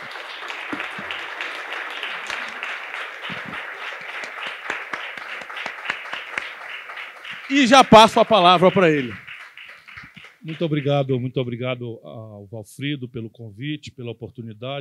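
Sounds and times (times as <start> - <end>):
audience applause: 0.0 - 11.2
speech: 7.5 - 9.2, 10.4 - 14.7.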